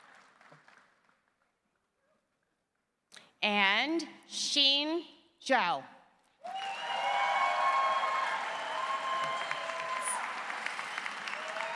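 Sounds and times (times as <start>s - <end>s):
audience applause for 2023 JD graduates: 0.0s - 1.1s, 6.4s - 11.7s
speech: 3.4s - 6.6s.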